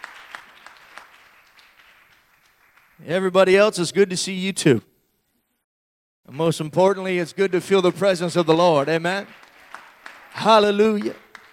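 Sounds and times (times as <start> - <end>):
applause for guests at a church service: 0.0 - 3.0, 6.3 - 11.5
speech: 3.0 - 4.9, 6.3 - 9.4, 10.4 - 11.2.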